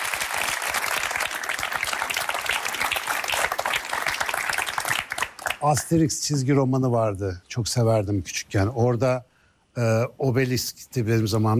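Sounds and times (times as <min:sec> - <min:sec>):
audience applause: 0:00.0 - 0:05.8
speech: 0:05.6 - 0:11.5.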